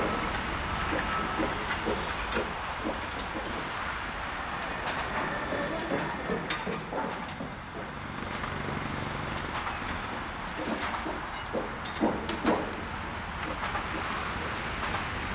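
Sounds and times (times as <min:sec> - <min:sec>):
ambient construction noise: 0:00.0 - 0:15.3.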